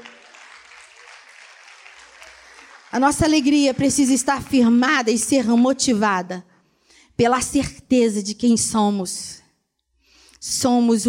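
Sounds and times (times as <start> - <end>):
audience applause: 0.0 - 4.3
speech: 2.9 - 6.5, 7.2 - 9.4, 10.4 - 11.0.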